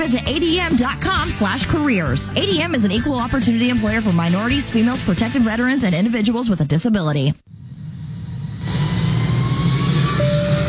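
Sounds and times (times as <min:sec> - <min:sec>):
speech: 0:00.0 - 0:07.4
United flight airplane engine drone between Decatur Airport and Chicago O'Hare: 0:07.5 - 0:10.6.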